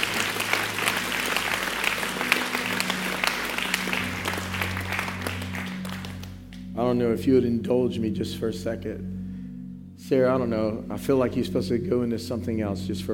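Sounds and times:
audience clapping hands: 0.0s - 6.7s
speech: 6.8s - 9.2s, 10.1s - 13.1s.

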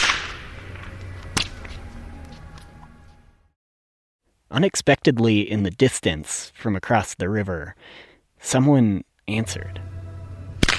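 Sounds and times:
whip crack with slapback echo: 0.0s - 0.6s, 1.3s - 1.6s, 10.6s - 10.7s
speech: 4.6s - 10.0s.

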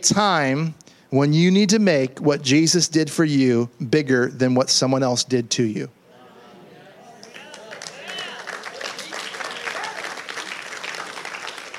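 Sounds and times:
speech: 0.0s - 6.0s
polite restrained audience applause: 7.2s - 11.7s.

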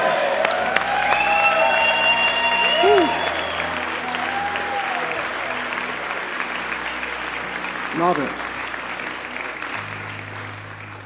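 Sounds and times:
whoops from the audience: 0.0s - 5.6s
audience clapping and cheering: 0.0s - 11.0s
speech: 8.0s - 8.4s.

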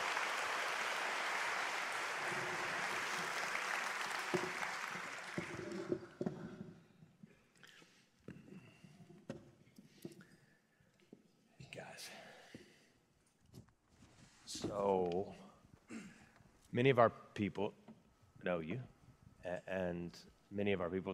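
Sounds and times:
audience applause welcoming speakers to the stage at a live event: 0.0s - 6.3s
speech: 16.8s - 17.8s, 18.4s - 21.1s.

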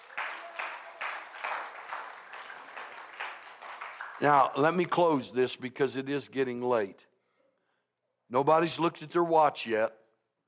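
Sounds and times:
audience clapping hands: 0.0s - 5.0s
speech: 4.2s - 7.1s, 8.3s - 10.0s.

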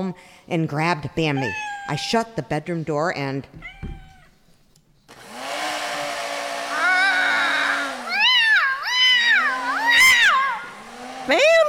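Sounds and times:
speech: 0.0s - 3.8s, 11.3s - 11.5s
cat yowling while being vacuumed: 1.3s - 2.2s, 3.6s - 4.3s, 6.7s - 10.8s
vacuum cleaner roaring: 5.1s - 11.6s.

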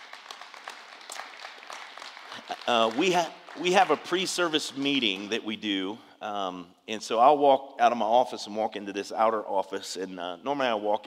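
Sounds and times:
audience applauding: 0.0s - 5.4s
speech: 2.6s - 11.0s.

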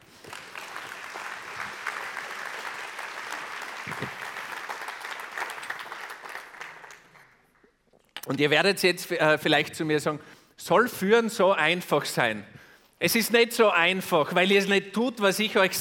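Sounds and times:
audience clapping: 0.0s - 7.8s
speech: 3.9s - 4.2s, 8.3s - 15.7s.

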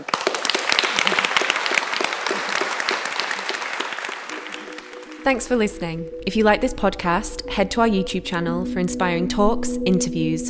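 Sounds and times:
audience applause: 0.0s - 5.3s
speech: 5.2s - 10.4s.

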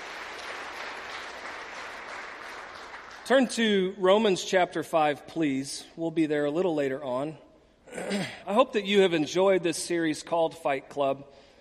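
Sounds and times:
audience applause: 0.0s - 3.3s
speech: 3.3s - 11.4s.

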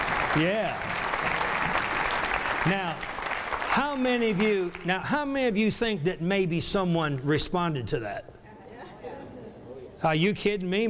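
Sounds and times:
audience clapping: 0.0s - 5.6s
speech: 0.4s - 1.1s, 2.6s - 3.1s, 3.7s - 8.4s, 10.0s - 10.8s.

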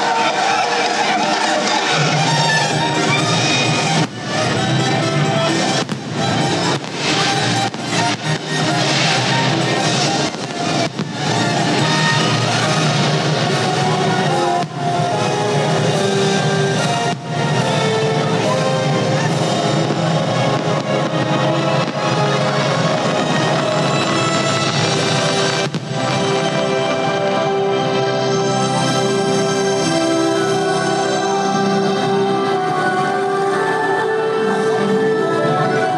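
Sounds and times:
crowd noise at Small World Mall: 0.0s - 35.9s
Disneyland Forever fireworks popping and cracking: 0.8s - 27.0s.

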